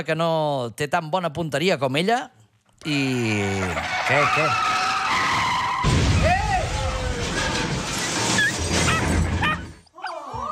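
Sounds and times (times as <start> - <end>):
speech: 0.0 - 4.8
Cadillac tires screeching in a car accident: 3.8 - 9.7.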